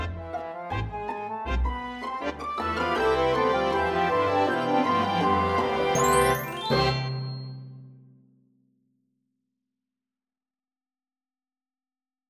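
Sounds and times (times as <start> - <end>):
fanfare: 0.0 - 7.7.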